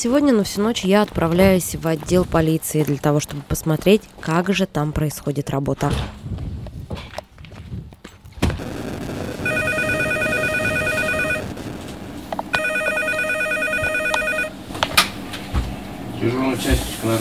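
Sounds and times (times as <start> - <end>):
speech: 0.0 - 6.4, 16.2 - 17.1
telephone ringing in a police duty room: 9.4 - 15.2.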